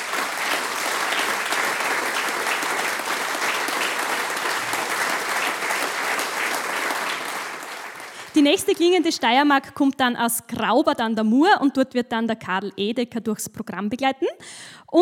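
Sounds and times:
audience applause: 0:00.0 - 0:09.0
speech: 0:08.4 - 0:15.0.

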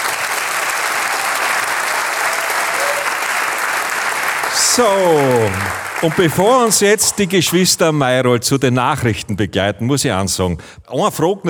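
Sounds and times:
audience applause: 0:00.0 - 0:07.7
speech: 0:04.6 - 0:11.4.

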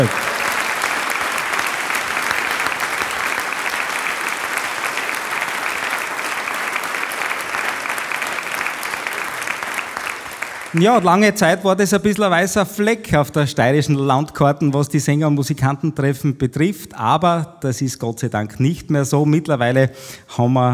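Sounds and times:
speech: 0:00.0 - 0:00.2, 0:10.8 - 0:20.7
crowd clapping: 0:00.0 - 0:11.6.

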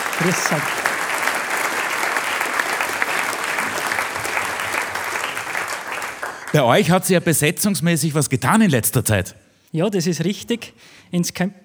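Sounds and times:
audience applause: 0:00.0 - 0:06.8
speech: 0:00.2 - 0:00.9, 0:06.5 - 0:11.6.

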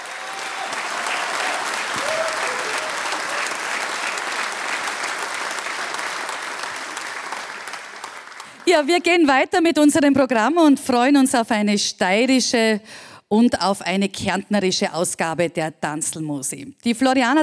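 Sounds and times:
audience applause: 0:00.0 - 0:08.9
speech: 0:08.7 - 0:17.4.

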